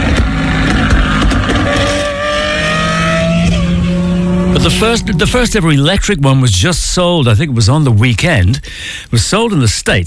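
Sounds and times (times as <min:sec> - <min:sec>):
Ferrari sports car engine roaring: 0:00.0 - 0:07.6
speech: 0:04.6 - 0:10.0.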